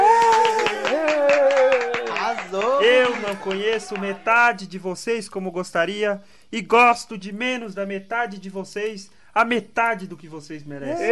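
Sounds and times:
scattered handclaps: 0:00.0 - 0:04.3
speech: 0:03.2 - 0:11.1.

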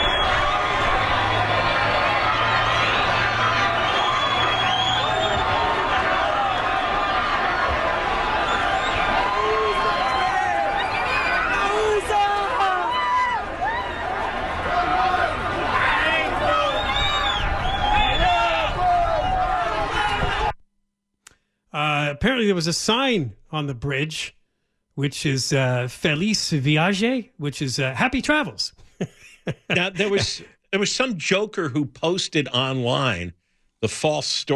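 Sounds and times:
crowd rushing across a border bridge shouting: 0:00.0 - 0:20.6
speech: 0:22.4 - 0:24.4, 0:25.0 - 0:34.5
laughter: 0:28.8 - 0:30.9.

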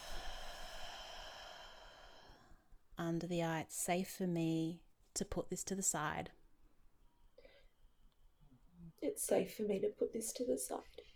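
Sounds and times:
deep breath in and out during a tapping relaxation exercise: 0:00.0 - 0:02.7
speech: 0:03.0 - 0:06.4, 0:09.1 - 0:11.1.

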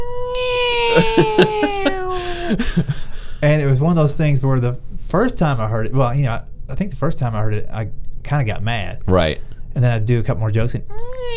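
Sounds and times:
voice imitating a dolphin-like laugh: 0:00.4 - 0:02.9
speech: 0:01.0 - 0:11.3.

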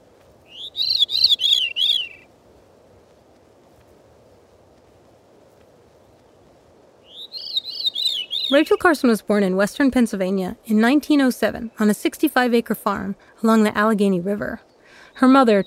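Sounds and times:
veery song with descending spiraling notes: 0:00.5 - 0:02.3, 0:07.0 - 0:09.0, 0:14.6 - 0:15.6
speech: 0:08.5 - 0:15.6.

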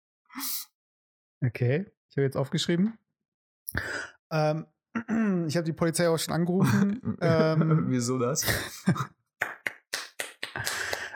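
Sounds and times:
speech: 0:00.4 - 0:00.7, 0:01.4 - 0:03.0, 0:03.7 - 0:09.5
laughter: 0:06.6 - 0:09.1
person clapping hands: 0:09.4 - 0:11.1.

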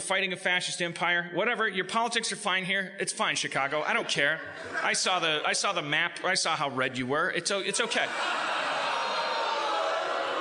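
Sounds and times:
speech: 0:00.1 - 0:08.6
laughter: 0:03.7 - 0:05.9, 0:07.7 - 0:10.4
audience booing: 0:07.8 - 0:10.4.

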